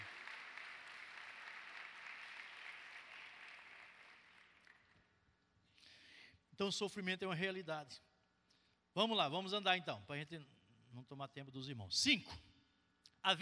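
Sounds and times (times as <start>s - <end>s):
audience applauding: 0.0s - 5.0s
speech: 6.6s - 8.1s, 9.0s - 12.5s, 13.2s - 13.4s.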